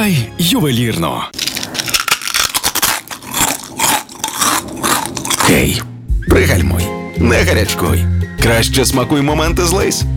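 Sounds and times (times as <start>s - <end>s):
speech: 0.0s - 1.4s, 5.5s - 10.1s
potato chips being bitten and chewed: 1.4s - 5.8s.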